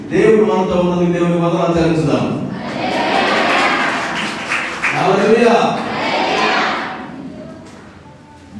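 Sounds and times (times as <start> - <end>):
speech: 0.1 - 2.4
church congregation clapping and shouting in praise: 2.6 - 7.8.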